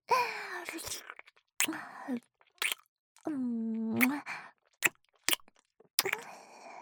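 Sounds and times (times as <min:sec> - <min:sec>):
oral sex sounds: 0:00.2 - 0:05.0, 0:06.0 - 0:06.4.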